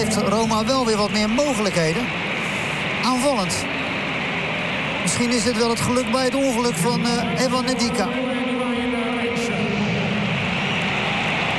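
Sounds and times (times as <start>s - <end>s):
speech: 0.0s - 2.3s, 3.0s - 4.0s, 5.0s - 8.5s
stadium crowd applause: 0.0s - 8.2s, 9.4s - 11.5s.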